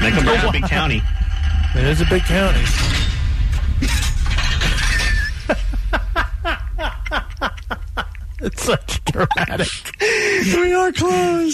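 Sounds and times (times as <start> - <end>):
laughter: 0.0 - 1.0, 5.4 - 10.6
sharp metallic clanks: 0.0 - 5.8
big door closing sound effect crashing clatter: 0.0 - 6.2
speech: 0.1 - 3.1, 8.4 - 11.5.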